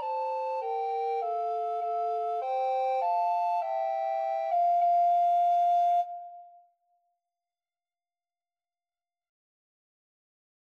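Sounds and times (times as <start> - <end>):
two alto recorders playing a duet: 0.0 - 6.6.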